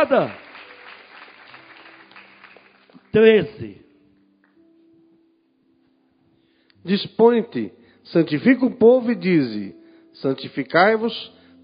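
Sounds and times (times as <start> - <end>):
speech: 0.0 - 0.4, 3.1 - 3.8, 6.8 - 11.4
audience applauding: 0.0 - 3.3.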